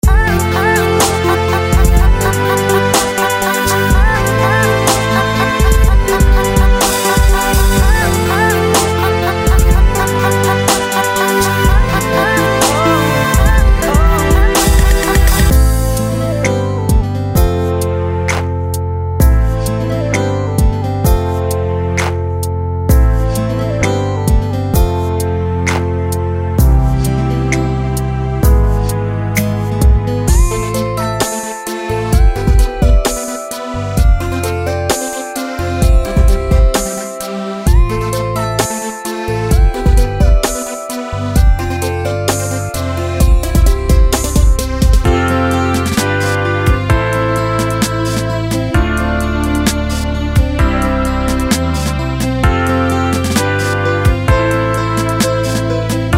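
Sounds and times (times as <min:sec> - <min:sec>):
rnb music loop: 0:00.0 - 0:56.1.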